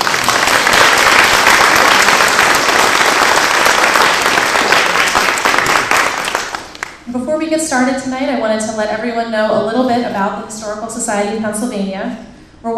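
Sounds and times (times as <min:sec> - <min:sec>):
round of applause: 0:00.0 - 0:07.1
speech: 0:07.4 - 0:12.7.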